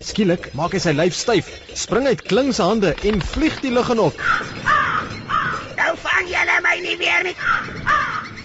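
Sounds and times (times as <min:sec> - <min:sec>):
speech: 0:00.0 - 0:04.7, 0:06.7 - 0:08.2
crow cawing: 0:04.1 - 0:06.0, 0:07.2 - 0:08.4.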